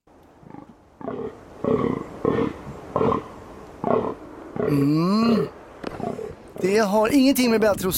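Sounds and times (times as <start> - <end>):
rutting fallow deer giving rasping belch-like groans: 0.4 - 6.6
speech: 1.6 - 2.0, 4.7 - 5.2, 6.6 - 7.9.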